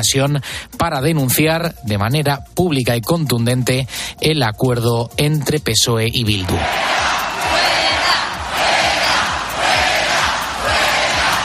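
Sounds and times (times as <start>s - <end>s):
speech: 0.0s - 7.2s
large protest crowd chanting: 6.6s - 11.4s.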